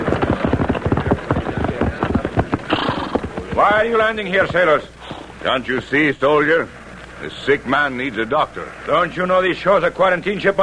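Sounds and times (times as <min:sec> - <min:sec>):
horses' hooves clip-clopping: 0:00.0 - 0:04.8
speech: 0:03.6 - 0:10.6.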